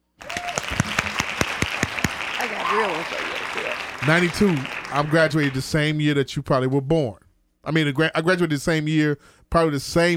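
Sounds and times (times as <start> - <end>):
audience hand claps: 0.2 - 6.0
speech: 2.7 - 10.1.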